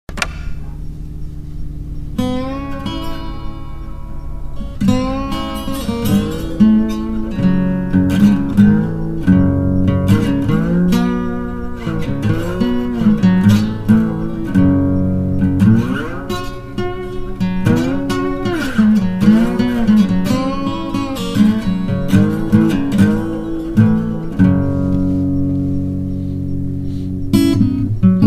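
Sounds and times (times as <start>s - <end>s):
acoustic blues music: 0.6s - 28.2s.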